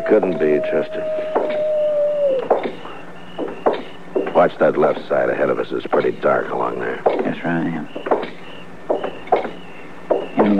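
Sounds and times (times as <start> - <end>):
speech: 0.0 - 1.4, 4.4 - 8.0
coyotes howling: 0.0 - 10.5.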